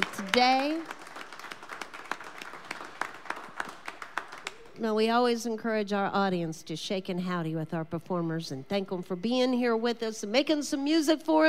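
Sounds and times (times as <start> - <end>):
audience applause: 0.0 - 4.7
speech: 0.4 - 1.0, 4.8 - 11.4.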